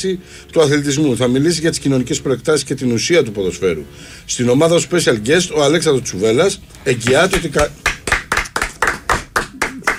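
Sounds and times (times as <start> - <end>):
speech: 0.0 - 7.9
one person clapping hands in support of a football-playing cousin: 7.0 - 9.9.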